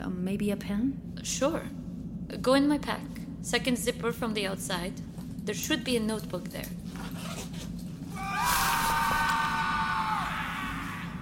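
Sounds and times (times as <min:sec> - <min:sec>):
low rumble: 0:00.0 - 0:11.2
speech: 0:00.2 - 0:07.3
distant scream used as a lure: 0:08.1 - 0:11.2.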